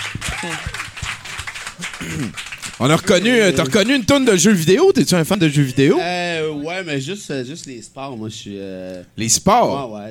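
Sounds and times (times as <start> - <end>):
audience applause for the show's technician: 0.0 - 4.4
speech: 0.4 - 0.8, 2.0 - 10.0.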